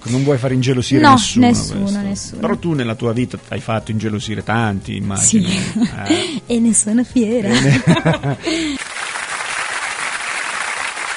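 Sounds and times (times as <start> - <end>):
speech: 0.1 - 8.8
laughter: 5.3 - 6.3, 7.4 - 8.8
audience applause: 8.7 - 11.1.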